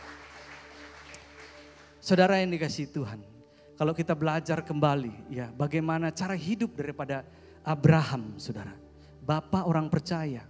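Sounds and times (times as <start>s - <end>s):
audience applause: 0.0s - 2.0s
speech: 2.1s - 10.4s.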